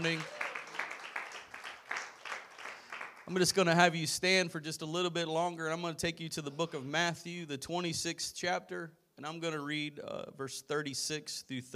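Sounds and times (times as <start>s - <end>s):
speech: 0.0s - 0.4s, 3.3s - 11.7s
audience clapping hands: 0.0s - 3.4s.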